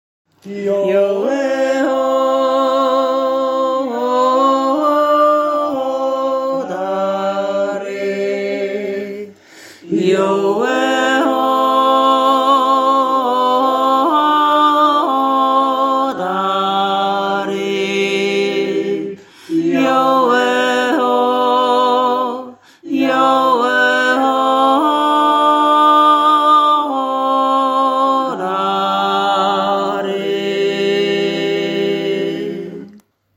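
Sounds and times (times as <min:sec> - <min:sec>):
solo voices singing: 0:00.3 - 0:33.1.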